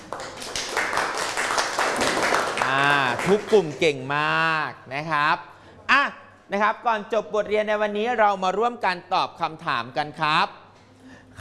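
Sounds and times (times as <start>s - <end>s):
classroom clapping: 0.0s - 4.1s
speech: 3.2s - 10.6s.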